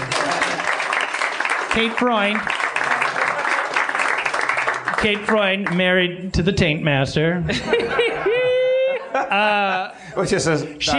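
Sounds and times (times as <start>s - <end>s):
laughter: 0.0s - 1.0s, 7.4s - 10.1s
crowd applause: 0.0s - 5.8s
speech: 1.8s - 2.6s, 5.0s - 8.1s, 9.3s - 10.9s
person whooping: 8.2s - 9.2s.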